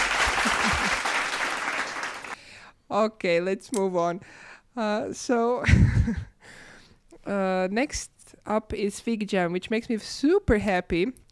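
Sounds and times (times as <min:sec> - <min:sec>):
laughter: 0:00.0 - 0:01.7
audience applause: 0:00.0 - 0:02.4
speech: 0:02.9 - 0:06.6, 0:07.2 - 0:11.2.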